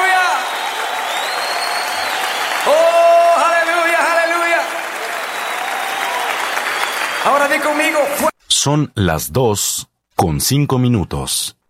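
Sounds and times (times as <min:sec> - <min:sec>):
audience applauding: 0:00.0 - 0:08.3
speech: 0:07.5 - 0:11.6.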